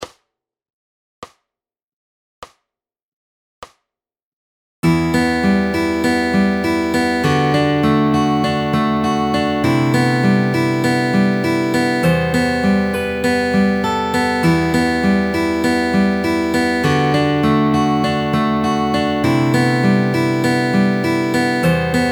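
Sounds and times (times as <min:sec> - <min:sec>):
fingerpicked guitar: 0:04.8 - 0:22.0.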